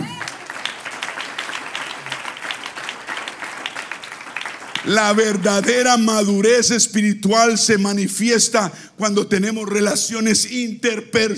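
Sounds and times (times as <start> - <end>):
crowd applause: 0.0 - 5.8
speech: 4.8 - 11.3.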